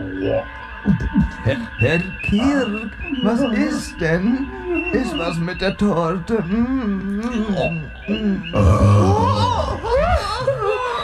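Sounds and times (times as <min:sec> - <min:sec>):
speech: 0:00.1 - 0:10.5
laughter: 0:00.8 - 0:11.0
burp: 0:08.5 - 0:09.5.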